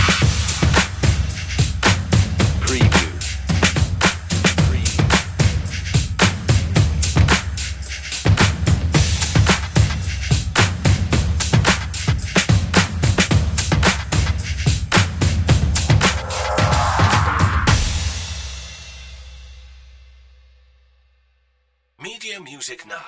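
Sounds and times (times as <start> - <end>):
urban beat drums: 0.0 - 19.3.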